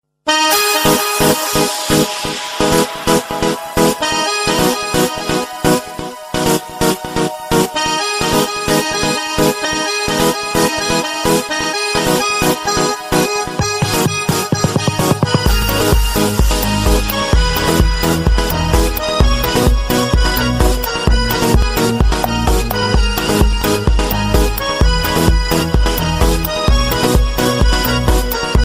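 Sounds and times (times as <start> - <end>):
love tune: 0.3 - 28.6.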